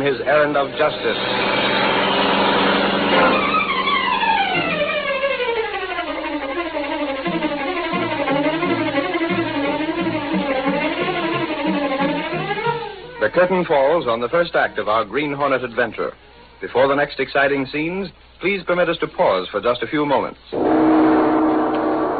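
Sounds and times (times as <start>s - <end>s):
speech: 0.0s - 1.6s, 3.1s - 3.5s, 13.2s - 20.6s
powerful black car roaring through city streets: 0.0s - 13.7s, 20.6s - 22.1s.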